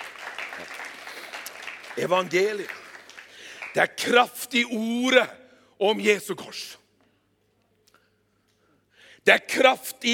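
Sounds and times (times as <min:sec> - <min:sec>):
audience applause: 0:00.0 - 0:03.8
speech: 0:02.0 - 0:02.8, 0:03.7 - 0:06.8, 0:09.2 - 0:10.1.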